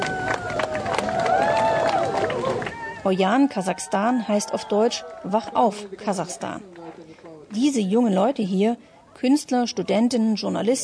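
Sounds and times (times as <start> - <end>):
audience applause: 0.0 - 5.9
speech: 3.0 - 6.7, 7.5 - 10.8.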